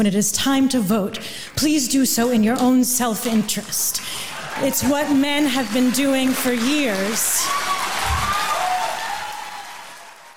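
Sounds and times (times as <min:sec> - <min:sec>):
speech: 0:00.0 - 0:07.7
audience applause: 0:03.6 - 0:10.3.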